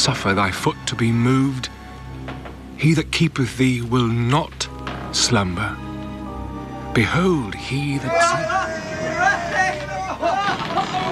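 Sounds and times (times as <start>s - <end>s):
speech: 0.0s - 1.8s, 2.8s - 5.9s, 6.9s - 11.0s
crowd cheering: 7.4s - 11.0s.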